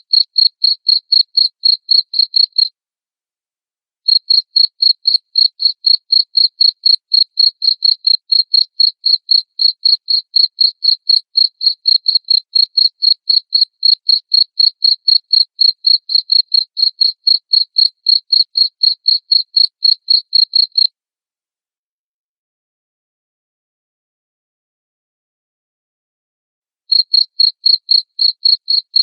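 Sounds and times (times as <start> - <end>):
cricket chirping: 0.1 - 2.7, 4.1 - 20.9, 26.9 - 29.0.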